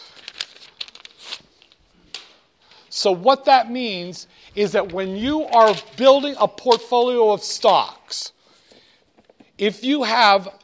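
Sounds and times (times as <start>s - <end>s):
sheet of paper crinkling and rustling as it is handled: 0.0s - 2.3s, 4.7s - 7.8s
speech: 3.0s - 8.4s, 9.6s - 10.6s.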